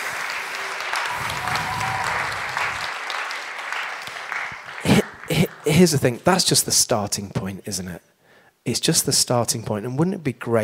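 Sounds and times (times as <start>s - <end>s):
audience applause: 0.0s - 6.0s
speech: 5.7s - 10.6s.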